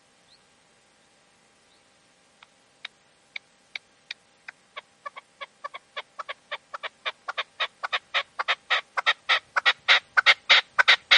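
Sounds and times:
partridge or tinamou clucking: 2.8s - 11.1s.

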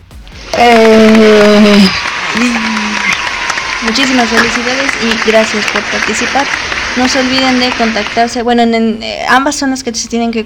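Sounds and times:
applause sound effect: 0.3s - 8.4s
speech: 0.6s - 1.0s, 3.9s - 10.4s.

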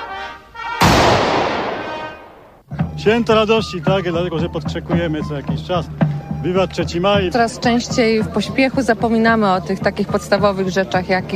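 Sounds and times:
ceremonial honor gun salute volley: 0.7s - 2.7s
speech: 3.0s - 11.3s.

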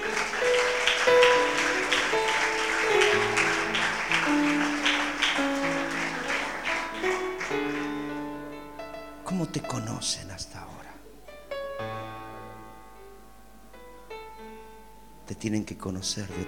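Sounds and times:
audience applauding: 0.0s - 8.6s
sustained musical tones: 0.0s - 16.4s
speech: 15.4s - 16.4s.

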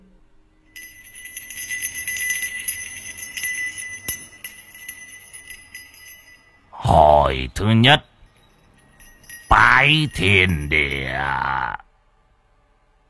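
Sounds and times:
bell ringing: 0.7s - 6.7s, 8.1s - 11.8s
speech: 7.3s - 8.1s, 9.8s - 11.8s.

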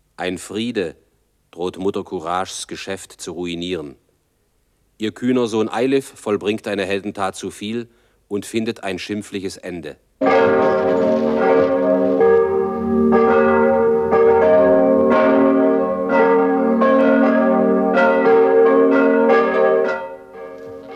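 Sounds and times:
speech: 0.2s - 4.0s, 5.0s - 10.6s
church bells pealing: 10.2s - 20.9s.

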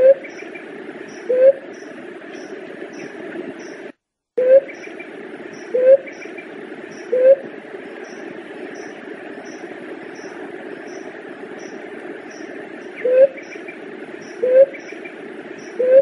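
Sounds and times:
Leptotila dove cooing: 1.2s - 1.6s, 4.4s - 4.8s, 5.7s - 6.1s, 7.0s - 7.4s, 13.0s - 13.4s, 14.4s - 14.8s, 15.7s - 15.9s.

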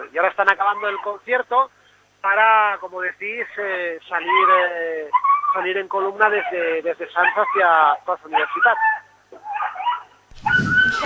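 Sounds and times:
speech: 0.0s - 9.0s
dog whimpering in the rain beside a street protest concert: 4.2s - 11.0s.

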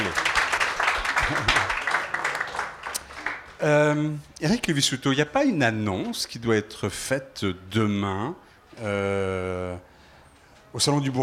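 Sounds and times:
audience applause: 0.0s - 3.6s
speech: 3.6s - 9.9s, 10.7s - 11.2s.

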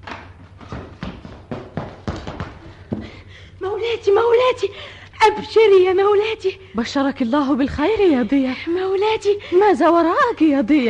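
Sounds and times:
hurried footsteps: 0.0s - 3.5s
speech: 3.8s - 10.8s.

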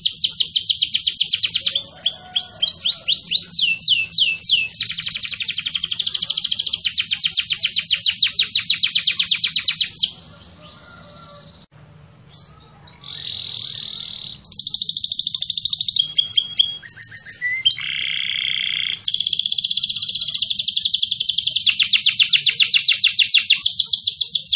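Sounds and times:
canary song in energetic nonstop style: 0.0s - 24.5s.

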